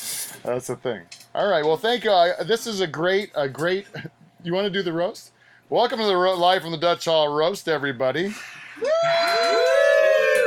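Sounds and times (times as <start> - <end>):
speech: 0.4 - 9.4
live audience booing and whooping: 8.8 - 10.4.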